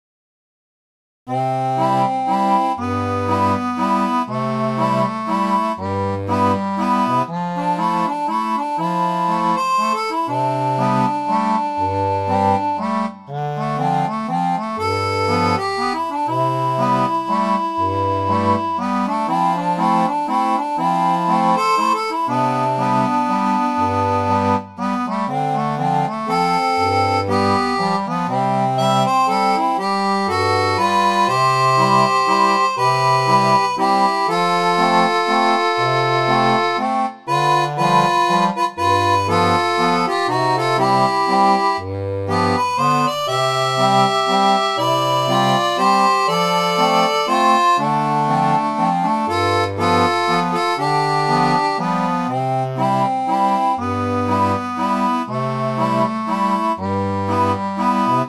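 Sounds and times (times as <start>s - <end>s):
barrel organ: 1.3s - 58.2s.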